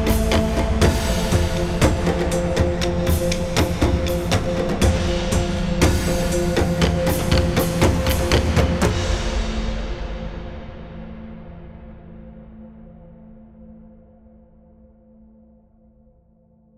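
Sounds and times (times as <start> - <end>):
taiko drums: 0.0 - 10.8.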